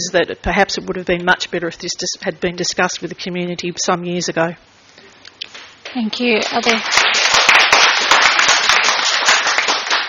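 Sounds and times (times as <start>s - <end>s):
speech: 0.1s - 4.8s, 6.0s - 7.1s
public gallery applauding: 6.4s - 10.0s.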